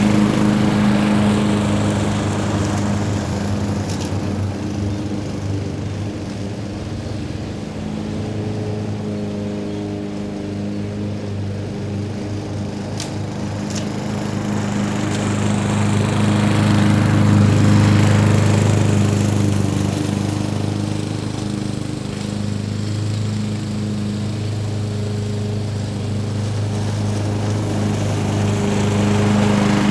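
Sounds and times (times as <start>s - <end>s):
lawn mower cutting grass: 0.0s - 29.9s.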